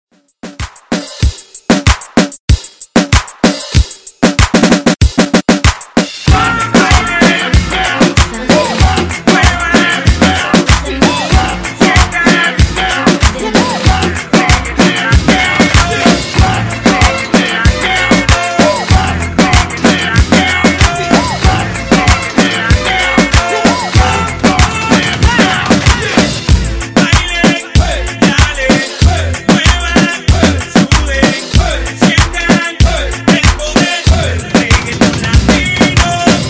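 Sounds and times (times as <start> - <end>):
Latin reggaeton music: 0.2 - 36.4.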